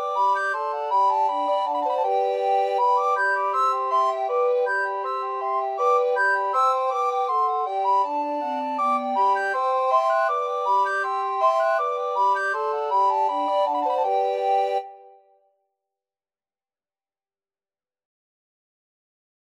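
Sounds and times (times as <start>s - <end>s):
recorder quartet: 0.0s - 15.2s.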